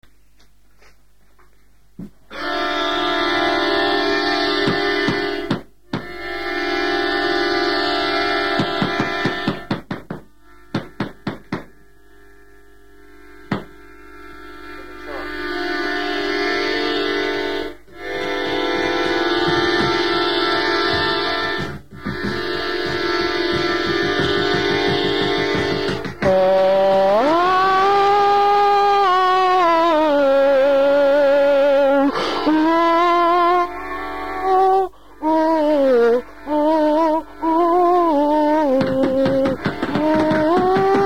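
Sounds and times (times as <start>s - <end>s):
instrumental music: 0.0s - 41.0s.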